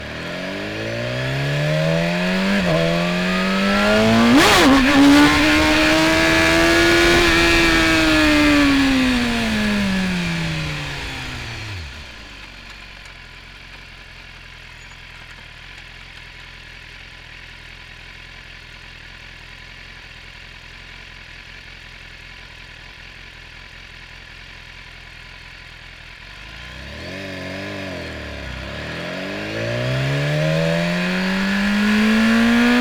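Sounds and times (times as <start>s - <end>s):
2015 BMW S1000RR 999cc four-stroke motorcycle engine accelerating onboard: 0.0s - 13.1s, 26.3s - 32.7s
2015 BMW S1000RR motorcycle gearshifts: 1.0s - 12.9s, 29.8s - 32.7s.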